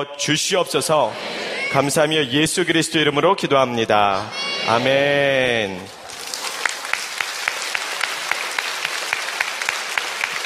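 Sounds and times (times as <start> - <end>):
speech: 0.0 - 6.0
audience applauding: 5.7 - 10.4.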